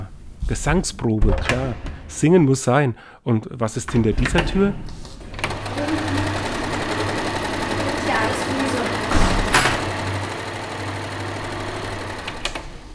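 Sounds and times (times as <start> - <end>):
speech: 0.5 - 5.1
sewing machine stitching costumes: 5.2 - 12.9.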